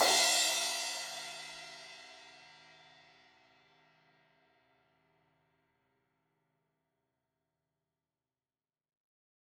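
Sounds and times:
16-inch crash cymbal hit on the edge: 0.0s - 2.0s.

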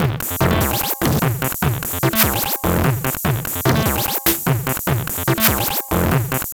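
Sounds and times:
organic drum beats: 0.0s - 6.5s.

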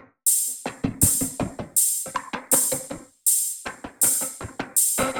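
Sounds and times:
percussion loop: 0.3s - 5.1s.

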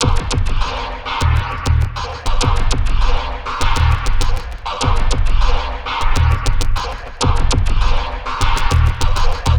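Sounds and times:
zappy electronic loop: 0.0s - 9.5s.

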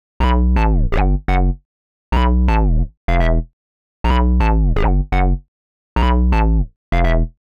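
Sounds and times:
hard synth bass note in E at 125 BPM: 0.2s - 1.6s, 2.2s - 3.4s, 4.1s - 5.4s, 6.0s - 7.3s.

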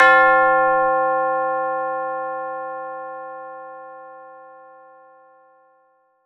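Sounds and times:
tubular bells: 0.0s - 2.6s.

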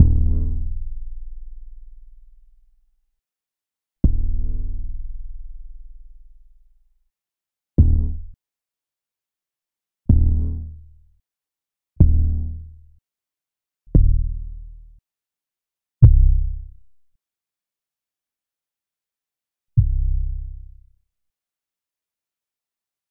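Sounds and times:
simple sub bass: 0.0s - 2.4s, 4.0s - 6.6s, 7.8s - 8.4s, 10.1s - 10.9s, 12.0s - 12.8s, 13.9s - 15.0s, 16.0s - 16.9s, 19.8s - 20.9s.

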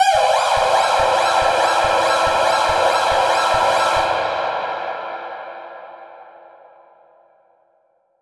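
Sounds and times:
alarm siren with echo processing at 120 bpm: 0.0s - 4.8s.

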